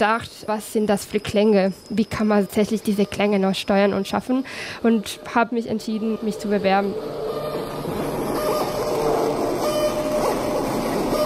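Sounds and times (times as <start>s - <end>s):
speech: 0.0s - 7.4s
electronic piece played by an RC car: 7.8s - 11.2s.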